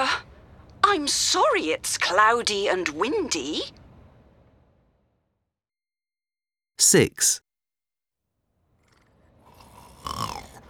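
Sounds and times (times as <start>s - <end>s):
speech: 0.9s - 3.8s, 6.8s - 7.4s
sleeping child snoring with a whistling tone: 8.9s - 10.6s.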